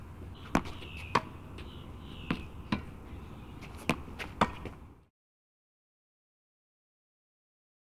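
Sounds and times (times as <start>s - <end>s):
continuous tennis volley: 0.2s - 5.0s.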